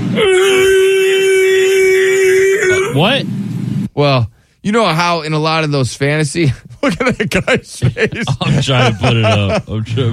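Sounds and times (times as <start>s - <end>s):
voice imitating a T-Rex roar mating call: 0.1s - 3.0s
speech: 4.0s - 10.1s
laughter: 6.5s - 10.1s.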